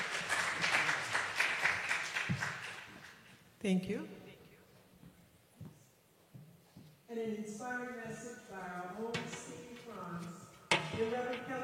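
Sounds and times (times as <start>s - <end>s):
church congregation applauding its music team: 0.0s - 3.3s
speech: 3.6s - 4.2s, 7.2s - 11.6s.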